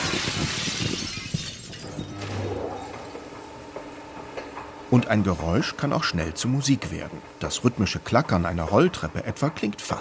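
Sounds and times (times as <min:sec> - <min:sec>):
glass fragments tinkling and clattering: 0:00.0 - 0:02.3
pane of glass shattering: 0:00.0 - 0:02.9
speech: 0:05.0 - 0:09.9.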